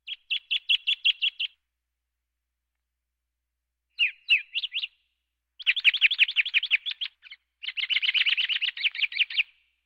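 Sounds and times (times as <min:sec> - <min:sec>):
birds: 0:00.0 - 0:01.6, 0:04.0 - 0:09.8.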